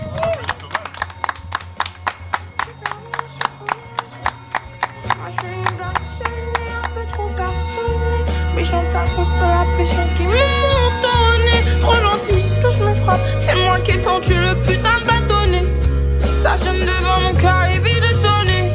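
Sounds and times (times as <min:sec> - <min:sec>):
hands clapping in rhythm: 0:00.0 - 0:07.4
musical backing: 0:00.0 - 0:18.7.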